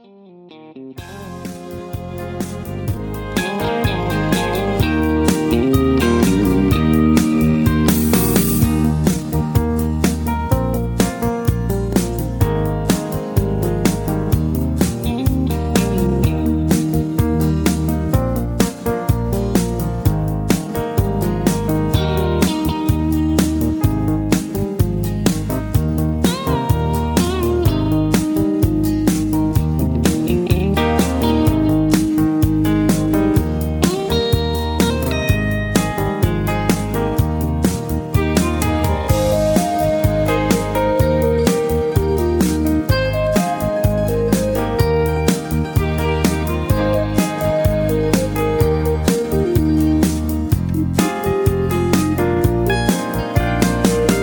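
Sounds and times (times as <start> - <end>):
high-key country music: 0.0 - 54.2.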